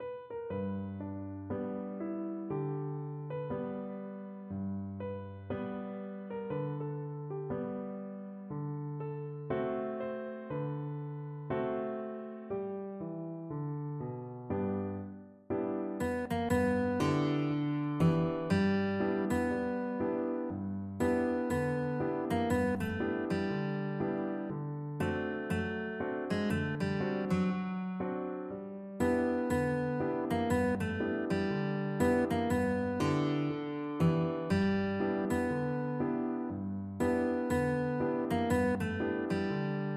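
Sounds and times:
guitar: 0:00.0 - 0:39.9.

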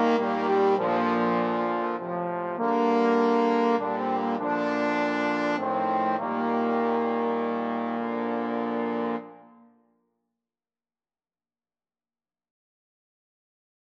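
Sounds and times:
trombone quartet: 0:00.0 - 0:09.6.

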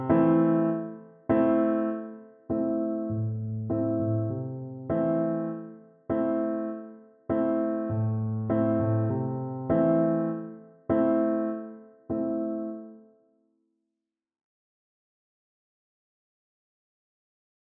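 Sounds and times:
reggae piano: 0:00.0 - 0:13.0.

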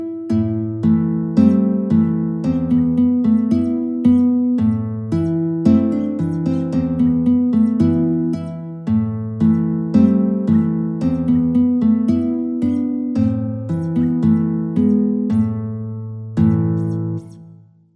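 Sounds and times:
two guitars playing a duet: 0:00.0 - 0:17.6.

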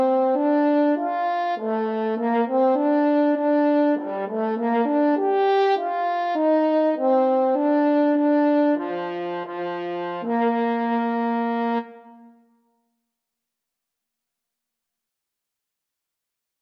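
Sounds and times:
trumpet and French horn duet playing a national anthem: 0:00.0 - 0:12.4.

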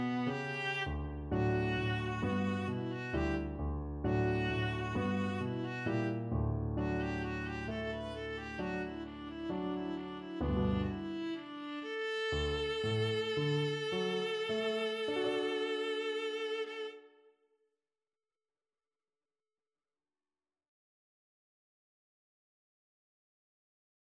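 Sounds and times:
viola and cello duet: 0:00.0 - 0:06.2, 0:06.8 - 0:17.0.

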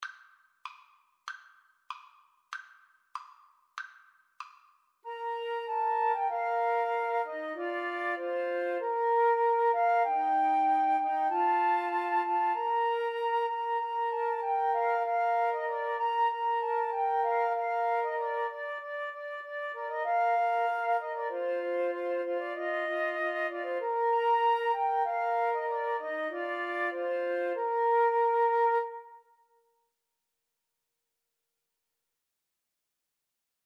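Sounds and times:
flute trio playing a Christmas carol: 0:05.1 - 0:29.3.

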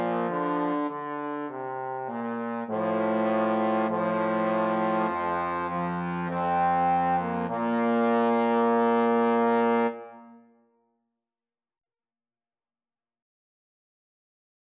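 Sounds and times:
trombone duet: 0:00.0 - 0:10.2.

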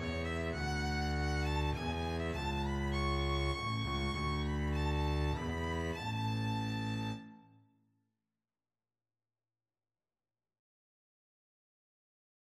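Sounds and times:
double bass: 0:00.0 - 0:07.2
violin: 0:00.0 - 0:07.5.

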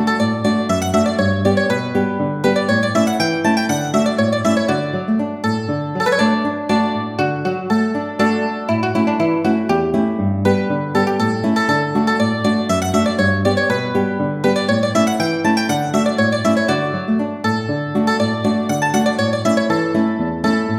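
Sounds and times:
mandolin and guitar duet: 0:00.0 - 0:20.7.

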